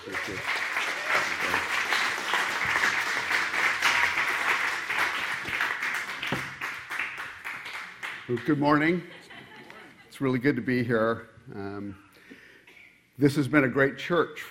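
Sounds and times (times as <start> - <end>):
church congregation applauding to welcome a visiting preacher: 0.0 - 9.0
speech: 0.3 - 0.6, 8.3 - 9.2, 10.2 - 12.0, 13.2 - 14.4
laughter: 8.9 - 10.3.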